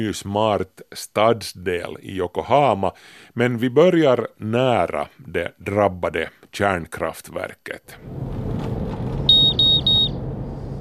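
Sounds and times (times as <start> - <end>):
speech: 0.0 - 8.4
radiation dosimeter beeping: 9.3 - 10.2.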